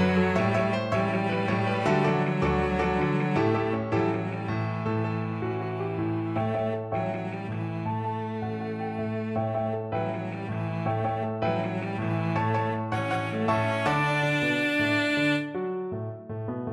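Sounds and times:
cello: 0.0 - 16.3
salsa music: 12.9 - 15.5.

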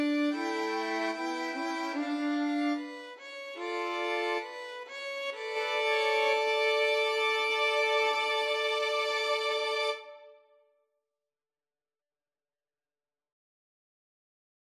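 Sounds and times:
violin trio: 0.0 - 10.3.

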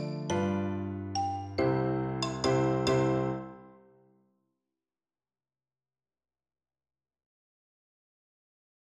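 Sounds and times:
xylophone: 0.0 - 3.8.

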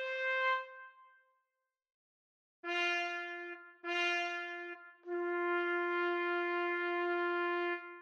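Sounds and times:
trumpet duet: 0.0 - 0.9, 2.6 - 8.0.

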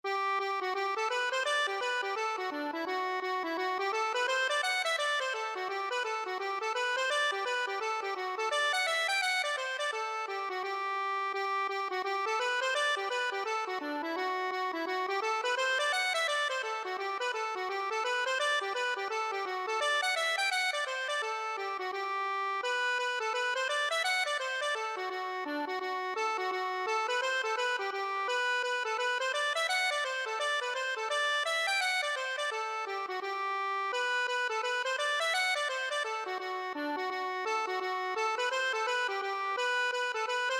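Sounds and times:
accordion playing a hornpipe: 0.1 - 40.5.

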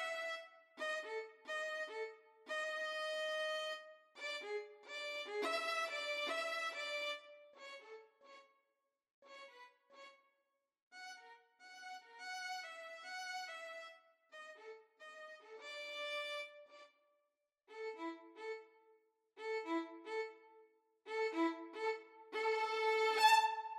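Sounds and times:
rag violin duet: 0.0 - 8.0, 11.0 - 16.6, 19.4 - 20.5, 21.1 - 23.7.

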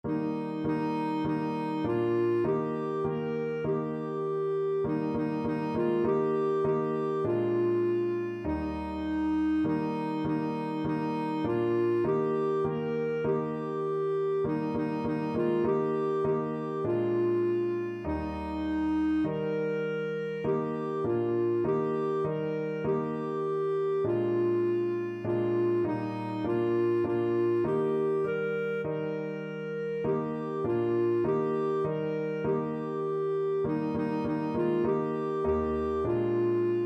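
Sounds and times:
clarinet: 0.0 - 36.8.

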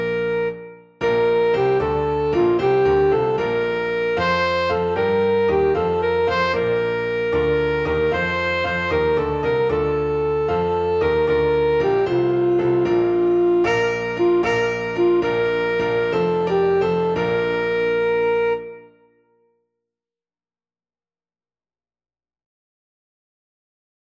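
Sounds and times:
saxophone: 0.0 - 19.2.

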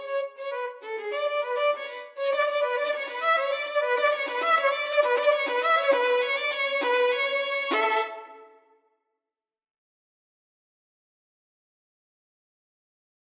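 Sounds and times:
violin duet: 0.0 - 8.6.

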